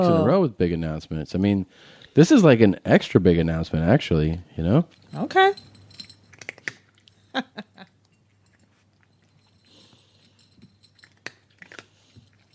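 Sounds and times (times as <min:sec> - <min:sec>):
speech: 0:00.0 - 0:05.7, 0:07.4 - 0:07.6
cat eating hard food from bowl: 0:06.1 - 0:07.2, 0:08.0 - 0:12.5.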